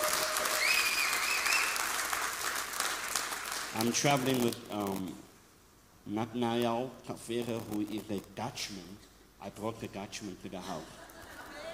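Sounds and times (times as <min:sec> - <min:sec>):
audience applause: 0:00.0 - 0:04.0
speech: 0:03.8 - 0:05.3, 0:06.1 - 0:11.0.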